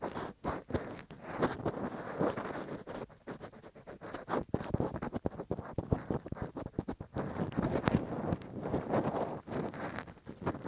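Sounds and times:
ear cleaning with a Q-tip and ear pick: 0.0s - 10.6s.

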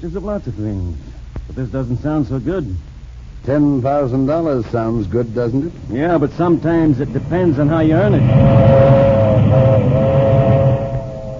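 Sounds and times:
speech: 0.0s - 10.0s
sustained humming whine: 2.6s - 11.3s
milk train rumbling past: 5.9s - 11.3s.

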